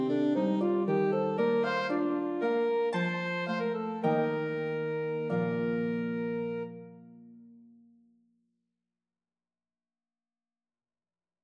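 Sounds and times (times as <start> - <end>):
Eb alto saxophone: 0.0 - 7.2
harp: 0.0 - 7.2.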